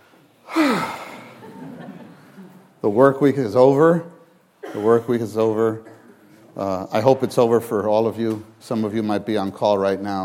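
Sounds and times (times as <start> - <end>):
deep breath during a church talk: 0.4 - 1.4
laughter: 0.7 - 2.8
speech: 2.8 - 5.9, 6.6 - 10.2.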